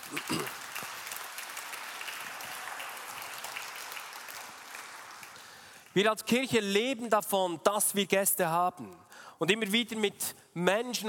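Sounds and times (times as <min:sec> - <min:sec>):
audience applause: 0:00.0 - 0:06.0
speech: 0:00.1 - 0:00.6, 0:06.0 - 0:11.0.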